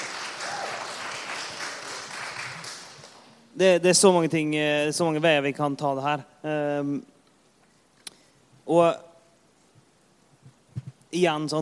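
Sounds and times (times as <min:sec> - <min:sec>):
audience clapping: 0:00.0 - 0:03.5
speech: 0:03.6 - 0:07.1, 0:08.7 - 0:09.1, 0:11.1 - 0:11.6.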